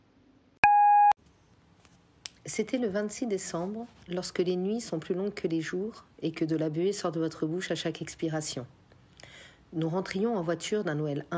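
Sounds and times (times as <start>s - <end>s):
voicemail beep: 0.6s - 1.2s
speech: 2.5s - 8.8s, 9.7s - 11.3s.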